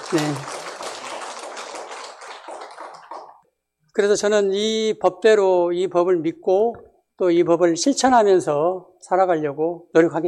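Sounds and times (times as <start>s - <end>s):
crowd applauding: 0.0s - 3.4s
speech: 0.1s - 0.6s, 4.0s - 10.2s.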